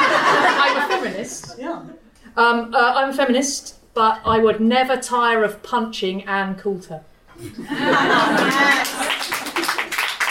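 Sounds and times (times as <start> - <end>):
laughter: 0.0 - 1.5, 7.4 - 9.9
speech: 1.3 - 9.4
smattering of audience applause: 8.1 - 10.3.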